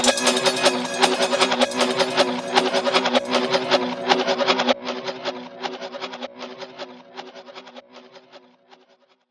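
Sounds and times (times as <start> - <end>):
trap beat: 0.0 - 4.4.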